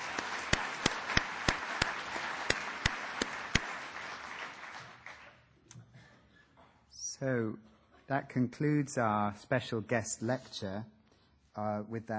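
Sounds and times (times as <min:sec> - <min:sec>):
audience round of applause: 0:00.0 - 0:05.4
speech: 0:07.2 - 0:11.0, 0:11.6 - 0:12.1.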